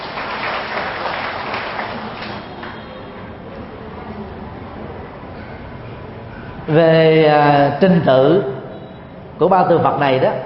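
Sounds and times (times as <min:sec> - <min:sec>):
audience applause: 0:00.0 - 0:02.8
speech: 0:06.7 - 0:08.6, 0:09.4 - 0:10.4.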